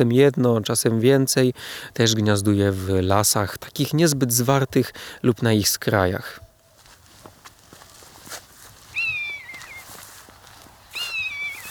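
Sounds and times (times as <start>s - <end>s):
speech: 0.0s - 6.5s
faint rustling: 6.6s - 11.6s
common buzzard call: 8.9s - 9.9s, 10.9s - 11.6s.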